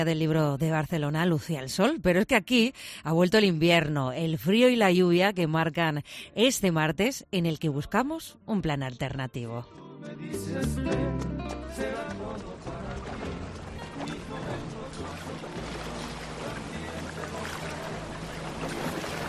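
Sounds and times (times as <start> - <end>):
speech: 0.0 - 13.2
indistinct voices: 10.3 - 19.1
thermal spa water and jacuzzi bubbling: 13.0 - 19.2.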